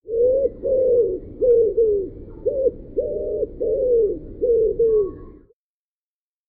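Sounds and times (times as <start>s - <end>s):
pigeon cooing: 0.0s - 5.5s.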